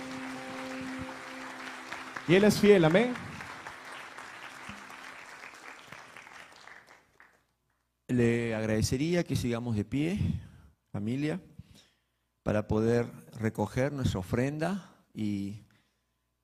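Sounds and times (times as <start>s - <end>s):
audience clapping hands: 0.0s - 7.8s
speech: 2.3s - 3.3s, 8.2s - 11.5s, 12.4s - 15.6s.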